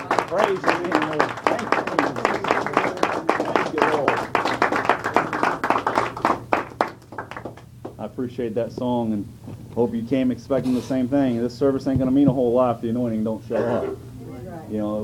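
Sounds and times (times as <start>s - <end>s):
audience clapping: 0.0s - 8.0s
speech: 0.3s - 4.1s, 8.2s - 14.0s, 14.7s - 15.0s.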